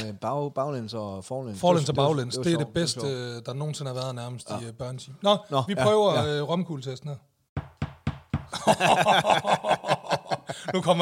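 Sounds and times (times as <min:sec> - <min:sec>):
speech: 0:00.0 - 0:07.3, 0:08.5 - 0:09.8, 0:10.5 - 0:10.9
knocking: 0:07.6 - 0:08.5
laughter: 0:08.5 - 0:10.9.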